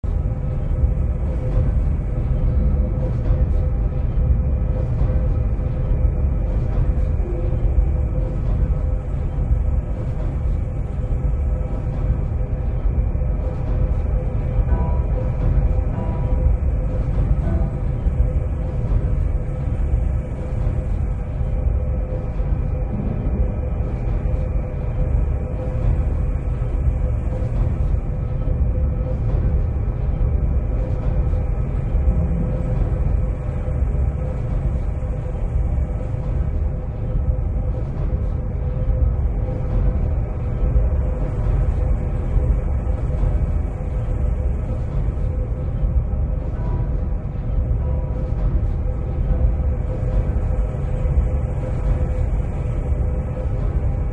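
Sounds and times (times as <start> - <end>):
bunker ambience: 0.0 - 54.1.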